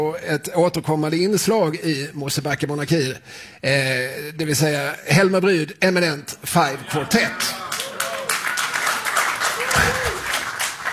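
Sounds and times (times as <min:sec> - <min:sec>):
speech: 0:00.0 - 0:07.7
audience applause: 0:07.3 - 0:10.9.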